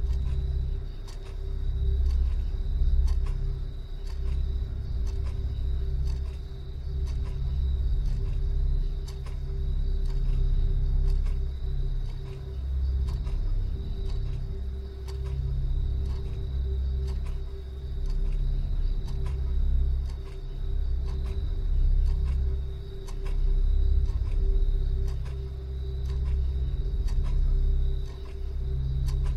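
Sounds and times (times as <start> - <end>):
faint clock-like tick: 0.0 - 29.3
hyperspace sleep chamber low rumbling hum: 0.0 - 29.3.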